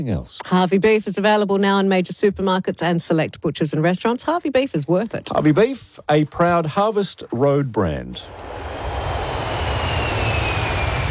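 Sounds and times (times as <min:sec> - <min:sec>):
speech: 0:00.0 - 0:08.7
airplane flying near Perth Airport: 0:08.3 - 0:11.1.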